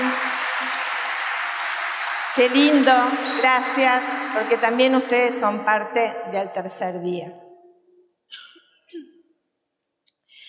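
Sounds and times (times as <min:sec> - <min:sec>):
audience applause: 0:00.0 - 0:05.4
speech: 0:02.4 - 0:07.4.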